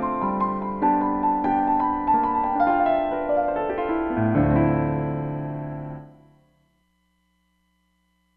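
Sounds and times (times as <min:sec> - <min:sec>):
Roland Fantom XR 88 concert piano: 0:00.0 - 0:06.6.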